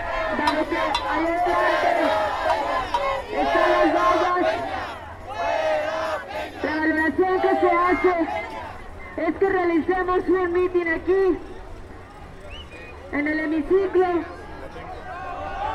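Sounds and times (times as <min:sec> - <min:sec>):
crowd chanting slogans at a protest march at the Hemiciclo a Juárez: 0:00.0 - 0:09.0
speech: 0:00.6 - 0:04.7, 0:09.2 - 0:11.5, 0:13.1 - 0:14.4.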